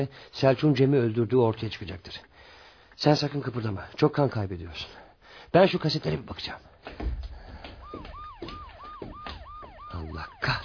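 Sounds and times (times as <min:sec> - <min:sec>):
speech: 0:00.0 - 0:02.3, 0:03.0 - 0:07.1, 0:10.1 - 0:10.6
police car sirens wailing: 0:07.4 - 0:10.6.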